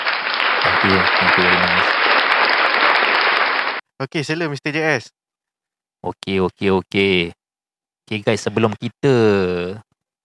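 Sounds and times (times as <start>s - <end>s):
audience applause: 0.0s - 3.8s
speech: 0.8s - 2.1s, 4.0s - 5.2s, 6.0s - 7.4s, 8.1s - 9.9s.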